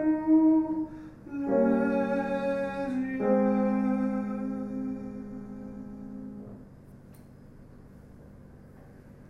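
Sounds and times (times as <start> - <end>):
contralto voices singing: 0.0 - 6.6.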